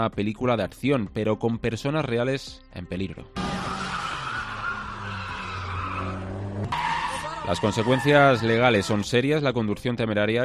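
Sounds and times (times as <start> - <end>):
speech: 0.0 - 3.7, 7.5 - 10.4
car skidding without tyres, bare wheel rim scraping asphalt: 3.4 - 8.6.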